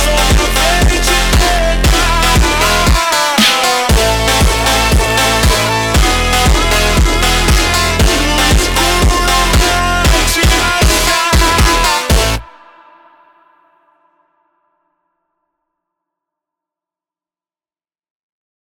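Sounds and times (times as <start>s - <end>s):
slowed montagem music: 0.0s - 12.4s.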